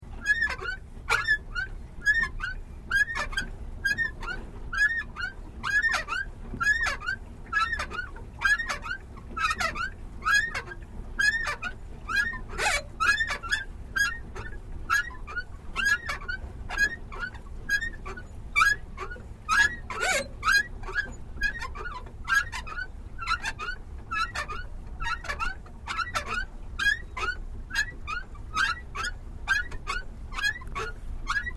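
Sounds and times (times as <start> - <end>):
pedal boat pedals squeaking in operation: 0.1 - 31.5.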